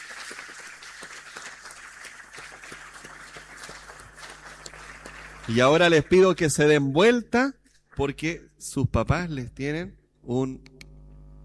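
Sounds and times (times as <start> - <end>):
audience applause for children: 0.0 - 6.6
speech: 5.5 - 10.7.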